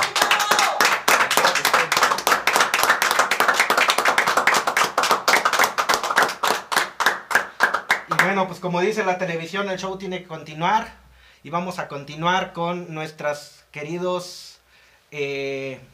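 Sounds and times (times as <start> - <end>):
applause: 0.0 - 8.4
speech: 8.4 - 14.5, 15.1 - 15.9.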